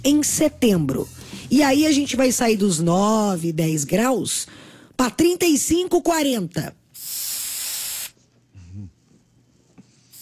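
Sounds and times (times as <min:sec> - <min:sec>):
speech: 0:00.0 - 0:06.8
throat spray hissing: 0:07.0 - 0:08.2
low voice murmuring: 0:08.6 - 0:09.0.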